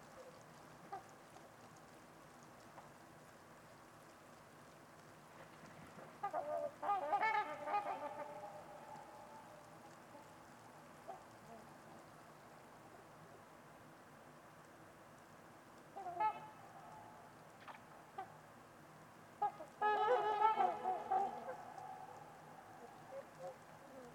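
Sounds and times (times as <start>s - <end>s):
low hiss: 0.0s - 24.1s
trumpeter swans honking: 6.2s - 10.4s, 15.9s - 18.4s, 19.4s - 24.1s.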